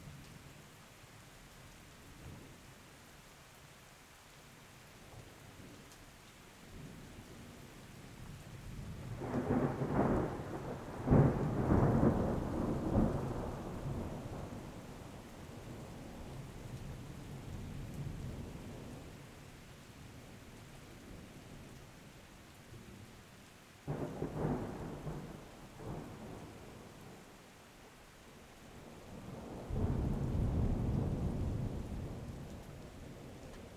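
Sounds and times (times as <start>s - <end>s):
storm: 8.6s - 19.1s, 23.8s - 27.2s, 29.1s - 33.7s.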